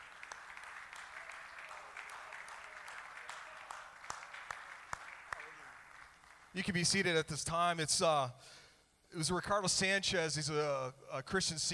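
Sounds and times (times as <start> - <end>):
audience clapping hands in praise: 0.0 - 7.0
speech: 6.6 - 11.7.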